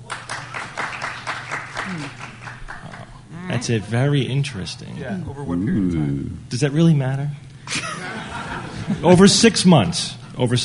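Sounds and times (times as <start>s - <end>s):
audience clapping: 0.0s - 3.3s
speech: 1.9s - 2.2s, 3.6s - 7.8s, 8.9s - 10.6s
laughter: 7.7s - 9.4s.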